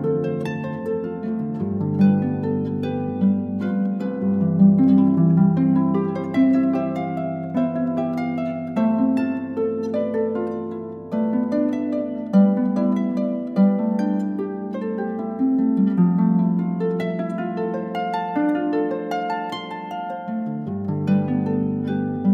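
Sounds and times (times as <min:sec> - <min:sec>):
solo harp minuet: 0:00.0 - 0:22.3.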